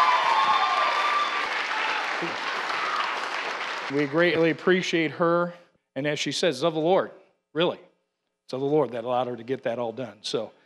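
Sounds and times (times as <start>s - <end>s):
audience applause: 0.0s - 4.6s
speech: 2.2s - 2.4s, 3.9s - 7.9s, 8.5s - 10.6s.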